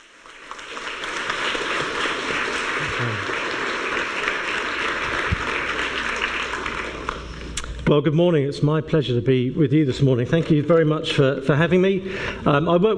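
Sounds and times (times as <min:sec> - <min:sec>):
audience applause welcoming a speaker: 0:00.0 - 0:07.4
speech: 0:03.0 - 0:03.4, 0:07.9 - 0:12.9.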